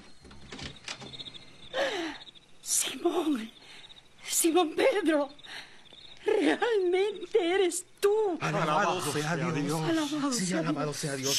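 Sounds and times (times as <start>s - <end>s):
door handling knocks and clicks: 0.0s - 1.4s
door creaking open: 0.0s - 1.7s
speech: 4.4s - 5.4s, 6.3s - 11.3s.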